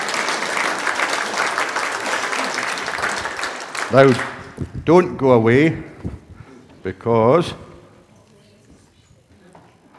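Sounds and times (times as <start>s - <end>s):
audience applause: 0.0s - 4.6s
speech: 3.9s - 6.2s, 6.8s - 7.6s.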